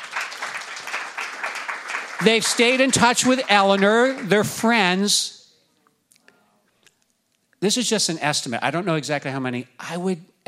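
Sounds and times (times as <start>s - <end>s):
audience clapping: 0.0s - 5.1s
speech: 2.2s - 5.4s, 7.6s - 10.4s.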